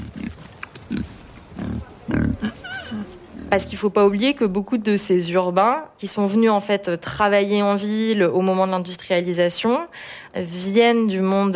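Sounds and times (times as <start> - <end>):
backyard farmyard pig grunting: 0.0 - 3.8
speech: 3.5 - 11.5.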